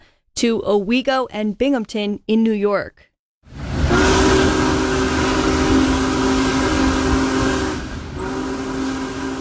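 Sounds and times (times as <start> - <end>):
speech: 0.4 - 3.1
Big Boy 4014 steam locomotive rumbling: 3.5 - 9.3.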